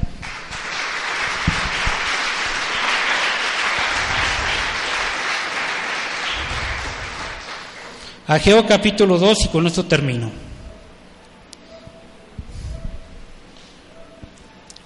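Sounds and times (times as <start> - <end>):
audience applause: 0.2 - 8.2
speech: 8.3 - 10.4.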